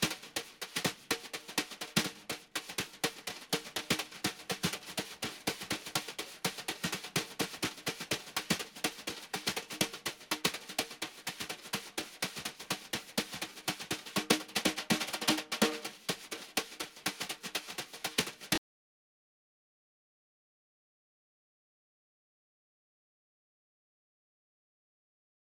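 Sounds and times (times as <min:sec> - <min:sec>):
muted snare drum from Xbox 360 game music: 0:00.0 - 0:18.6.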